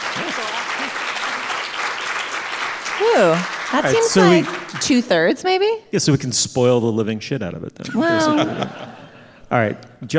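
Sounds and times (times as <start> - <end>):
audience applause: 0.0 - 5.3
speech: 3.0 - 8.9, 9.5 - 10.1
laughter: 7.8 - 9.5.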